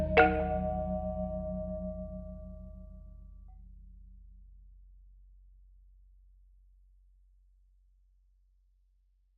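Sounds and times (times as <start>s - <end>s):
groovy marimba: 0.0s - 2.2s.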